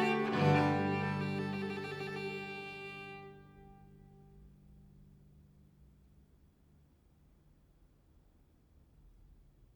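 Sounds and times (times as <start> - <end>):
lyra viol playing an early music saraband: 0.0 - 4.5.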